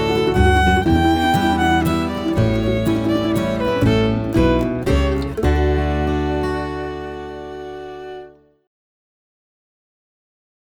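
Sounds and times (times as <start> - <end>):
country waltz music: 0.0 - 8.4.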